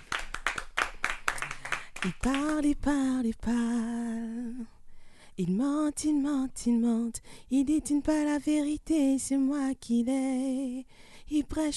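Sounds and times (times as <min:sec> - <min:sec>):
applause: 0:00.0 - 0:02.8
speech: 0:02.0 - 0:04.8, 0:05.4 - 0:11.7.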